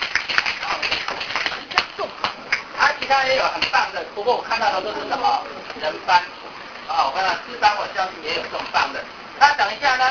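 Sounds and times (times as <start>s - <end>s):
audience of students clapping for a fellow student: 0.0s - 2.7s
speech: 2.8s - 10.0s.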